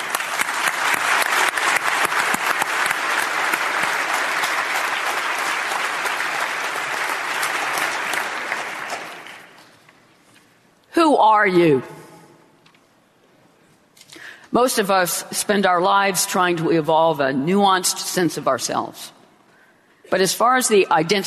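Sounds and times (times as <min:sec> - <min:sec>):
audience applause: 0:00.0 - 0:09.6
speech: 0:11.2 - 0:12.0, 0:14.6 - 0:19.2, 0:20.1 - 0:21.2.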